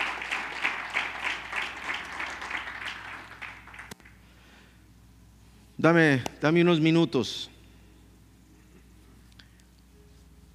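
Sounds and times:
audience applause: 0.0s - 4.0s
speech: 5.8s - 7.5s.

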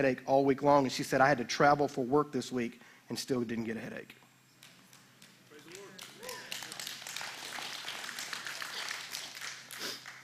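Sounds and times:
speech: 0.0s - 4.2s
audience light polite golf clap: 4.6s - 10.2s.

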